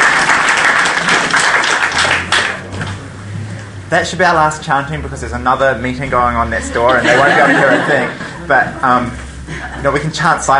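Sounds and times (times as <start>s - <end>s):
crowd clapping: 0.0s - 3.0s
speech: 3.9s - 10.5s
laughter: 6.6s - 10.1s.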